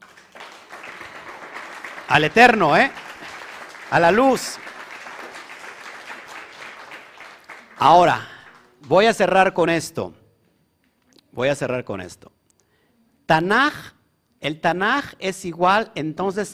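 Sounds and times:
audience applause: 0.0 - 8.7
speech: 2.1 - 3.0, 3.9 - 4.7, 7.8 - 10.2, 11.4 - 12.4, 13.3 - 16.5.

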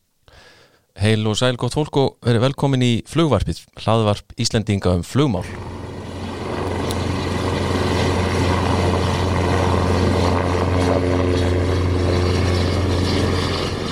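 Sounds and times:
speech: 1.0 - 5.8
Icelandic Coast Guard rescue helicopter flying: 5.4 - 13.8.

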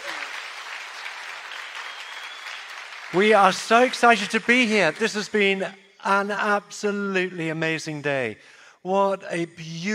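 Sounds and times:
church audience applauding a welcome for two guest speakers: 0.0 - 5.5
speech: 3.1 - 9.9.

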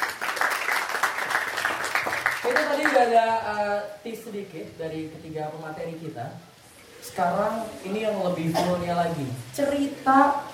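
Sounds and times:
applause: 0.0 - 3.1
speech: 2.5 - 10.5.

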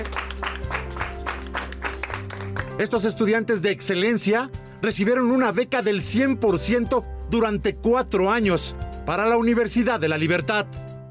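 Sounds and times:
applause: 0.0 - 2.9
speech: 2.8 - 10.9.

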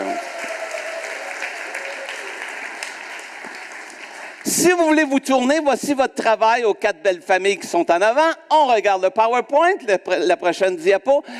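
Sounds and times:
audience applause: 0.0 - 4.7
speech: 4.4 - 11.3.

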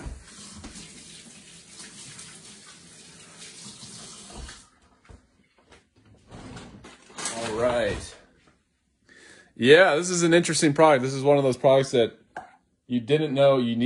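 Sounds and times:
water running from a tap as hands are washed: 0.0 - 4.8
speech: 9.6 - 12.2, 12.9 - 13.8.

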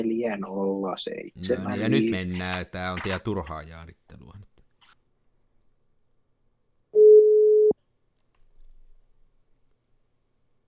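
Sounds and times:
speech: 0.0 - 4.5
telephone tone: 7.0 - 7.8.

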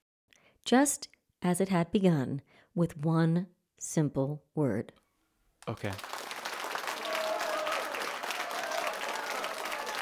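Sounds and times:
speech: 0.6 - 5.0, 5.6 - 6.1
crowd applause: 5.6 - 9.9.

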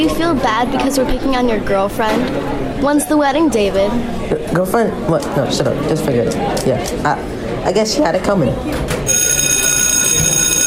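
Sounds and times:
speech: 0.0 - 9.4
school bell ringing: 9.1 - 10.6.

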